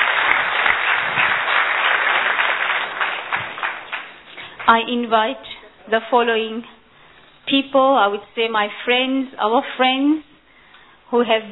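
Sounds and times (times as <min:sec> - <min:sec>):
audience applause: 0:00.0 - 0:04.8
speech: 0:04.7 - 0:06.7, 0:07.5 - 0:10.3, 0:11.1 - 0:11.5.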